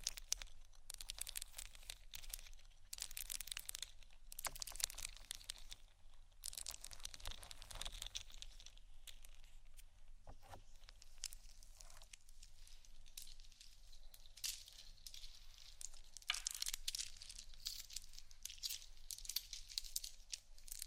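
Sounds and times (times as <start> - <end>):
scratching and crinkling textures: 0.0 - 20.8.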